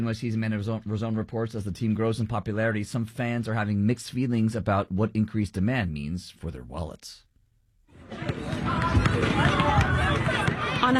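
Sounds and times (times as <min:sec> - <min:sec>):
speech: 0:00.0 - 0:07.3, 0:08.3 - 0:10.0
crowd noise and voices at an outdoor celebration: 0:07.9 - 0:10.9
basketballs bounced by Liberty fans at Brooklyn Bridge Park: 0:08.1 - 0:10.9.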